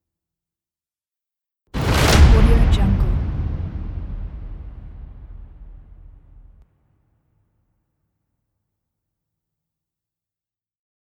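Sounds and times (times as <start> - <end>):
drum roll hits: 1.8 - 6.6.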